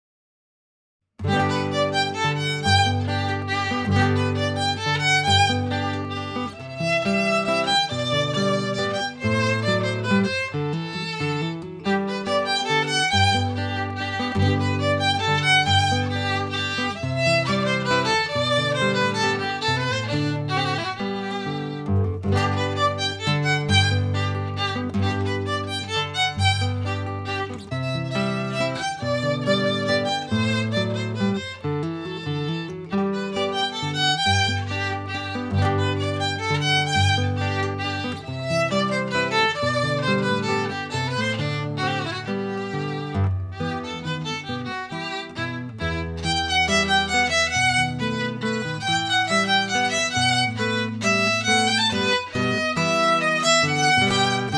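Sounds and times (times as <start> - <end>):
adagio minuet music: 1.2 - 54.5.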